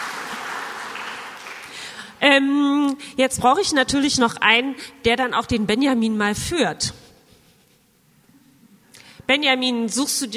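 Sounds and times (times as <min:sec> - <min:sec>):
audience applause for a volunteer: 0:00.0 - 0:02.0
speech: 0:02.3 - 0:07.0, 0:09.3 - 0:10.3.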